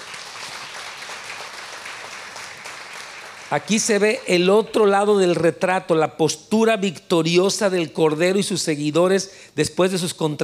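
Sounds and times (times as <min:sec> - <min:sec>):
audience applauding: 0:00.0 - 0:04.5
speech: 0:03.5 - 0:10.4.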